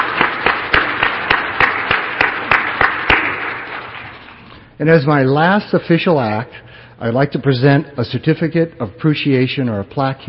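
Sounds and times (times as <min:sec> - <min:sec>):
audience applause: 0:00.0 - 0:04.1
speech: 0:04.8 - 0:10.2.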